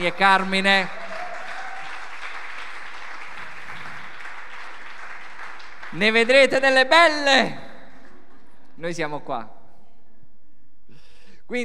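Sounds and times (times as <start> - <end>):
speech: 0.0 - 1.0, 6.0 - 7.6, 8.8 - 9.6, 11.5 - 11.6
crowd applause for the newlyweds: 0.0 - 6.6.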